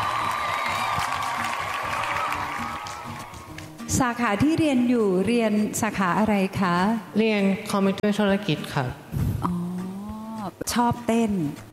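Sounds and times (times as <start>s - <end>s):
cheering: 0.0s - 3.7s
commentators clapping their hands: 0.0s - 3.8s
speech: 4.0s - 9.6s, 10.8s - 11.7s.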